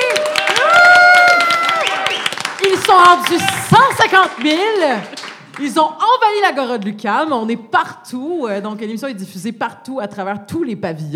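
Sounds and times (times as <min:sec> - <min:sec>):
applause: 0:00.0 - 0:05.8
speech: 0:02.9 - 0:11.1.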